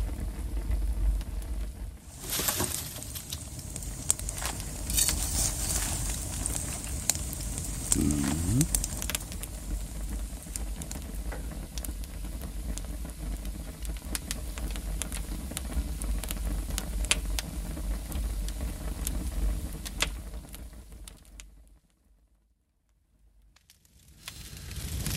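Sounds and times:
crackling campfire of burning firewood: 0:00.0 - 0:22.0, 0:22.9 - 0:25.1.

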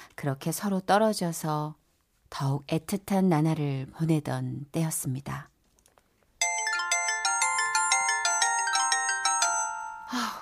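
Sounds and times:
speech: 0:00.2 - 0:05.5, 0:10.1 - 0:10.3
mobile phone ringtone: 0:06.4 - 0:10.3.

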